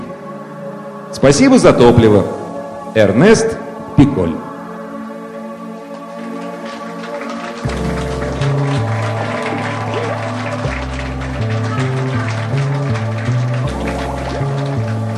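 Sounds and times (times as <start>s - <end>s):
speech: 1.1s - 4.5s
audience applause: 5.9s - 15.1s.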